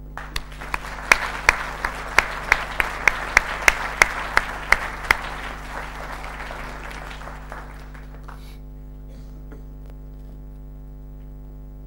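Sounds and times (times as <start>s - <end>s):
audience applause welcoming a lecturer at a talk: 0.0s - 8.6s.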